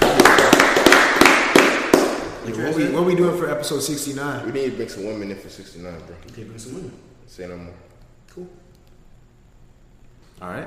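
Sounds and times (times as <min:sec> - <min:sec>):
hands clapping from a few people: 0:00.0 - 0:02.4
speech: 0:02.6 - 0:08.6, 0:10.4 - 0:10.6.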